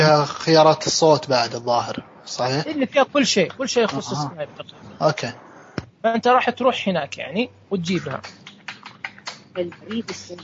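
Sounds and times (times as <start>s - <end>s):
speech: 0.0s - 5.4s, 6.0s - 8.4s, 9.6s - 10.4s
computer keyboard typing picked up by an open microphone on a call: 8.2s - 10.4s.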